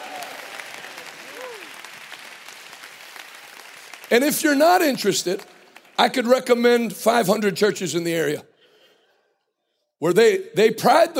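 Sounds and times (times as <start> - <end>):
audience clapping hands: 0.0 - 6.9
speech: 4.1 - 8.5, 10.0 - 11.1.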